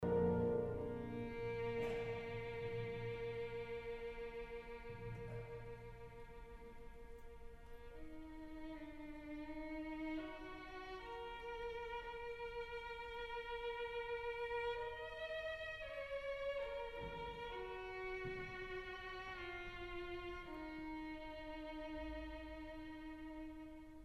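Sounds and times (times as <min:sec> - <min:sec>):
violin piece: 0:00.0 - 0:24.0.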